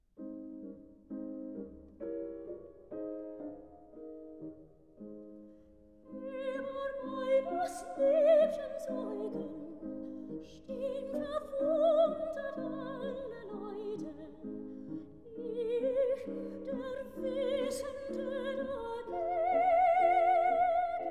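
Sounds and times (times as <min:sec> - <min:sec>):
piano: 0:00.0 - 0:21.1
person singing: 0:06.1 - 0:21.1.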